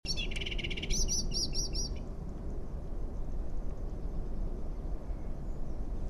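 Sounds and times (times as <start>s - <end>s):
Eurasian blackbird rattle and calls: 0.1s - 2.0s
low background rumble: 0.1s - 6.0s.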